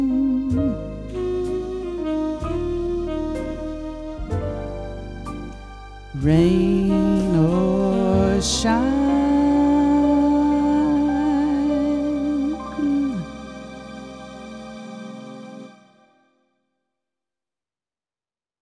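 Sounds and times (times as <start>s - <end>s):
vocals: 0.0s - 4.3s, 6.1s - 15.8s.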